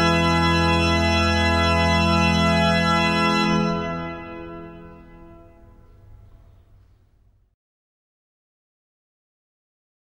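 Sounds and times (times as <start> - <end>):
grand plein jeu on pipe organ: 0.0 - 7.2.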